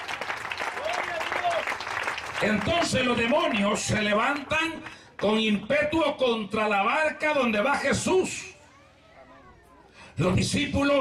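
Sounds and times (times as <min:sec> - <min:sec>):
crowd applauding: 0:00.0 - 0:05.4
raised voices and cheers: 0:00.8 - 0:01.8
speech: 0:02.4 - 0:08.6, 0:10.2 - 0:10.9.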